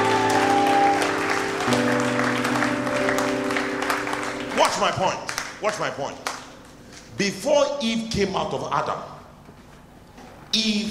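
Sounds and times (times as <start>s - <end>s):
audience clapping: 0.0s - 6.6s
speech: 4.8s - 6.3s, 7.2s - 9.1s, 10.5s - 10.8s.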